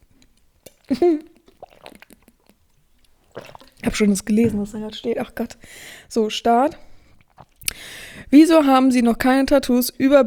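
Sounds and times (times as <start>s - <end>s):
sipping and swallowing water: 0.0s - 8.4s
speech: 0.9s - 1.3s, 3.9s - 6.9s, 7.8s - 10.2s.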